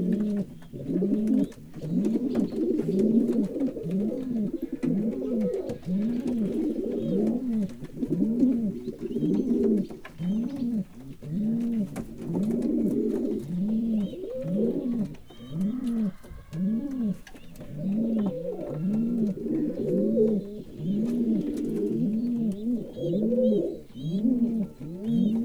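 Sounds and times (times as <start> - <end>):
standard-breed pigeons cooing at a zoo in Miskolc, Hungary: 0.0 - 25.4.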